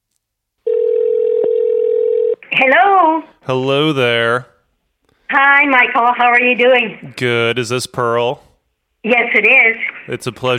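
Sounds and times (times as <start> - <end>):
telephone dialing and ringing tone: 0.6 - 2.4
speech: 2.6 - 4.5, 5.3 - 10.5.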